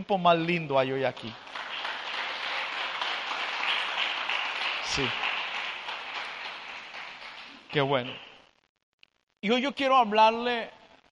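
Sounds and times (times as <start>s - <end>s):
speech: 0.0s - 1.6s, 5.0s - 5.3s, 7.7s - 8.3s, 9.4s - 10.8s
crowd applauding: 1.2s - 8.4s.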